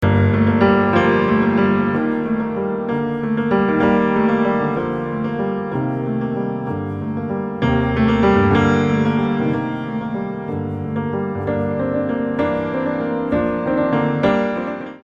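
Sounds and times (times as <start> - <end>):
piano piece: 0.0 - 15.0.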